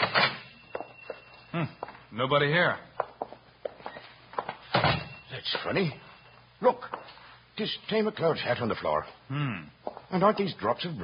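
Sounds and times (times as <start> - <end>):
speech: 1.5 - 2.9, 5.4 - 11.0
shop door being opened: 4.7 - 5.2.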